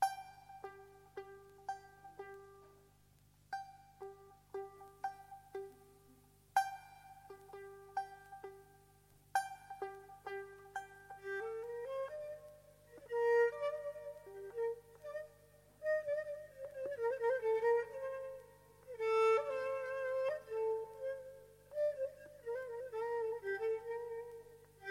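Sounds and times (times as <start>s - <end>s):
kamanche: 0.0s - 24.8s.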